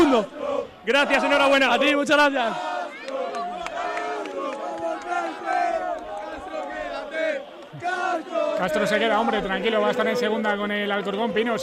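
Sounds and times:
fans chanting a name: 0.0s - 9.5s
speech: 0.1s - 2.7s, 7.8s - 11.6s
fans applauding: 2.6s - 9.0s.

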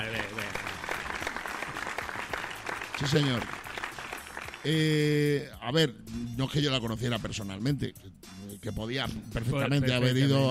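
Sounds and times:
audience applause: 0.0s - 4.7s
speech: 3.0s - 3.6s, 4.6s - 10.4s.

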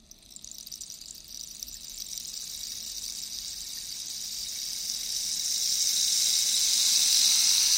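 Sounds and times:
cactus rainstick seeds hitting cactus spines imitating rain: 0.1s - 7.7s.

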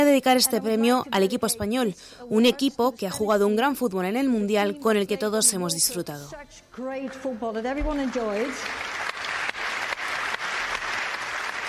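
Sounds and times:
speech: 0.1s - 9.0s
large audience applause: 8.2s - 11.6s.

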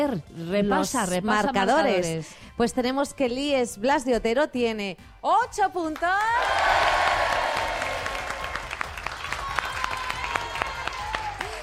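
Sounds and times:
speech: 0.0s - 7.0s
classmates applauding during a school competition: 6.4s - 11.6s.

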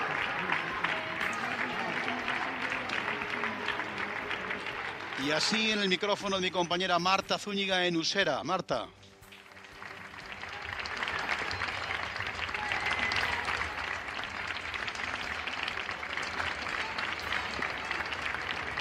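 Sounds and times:
applause: 0.0s - 6.9s, 9.2s - 18.7s
speech: 5.2s - 9.0s.

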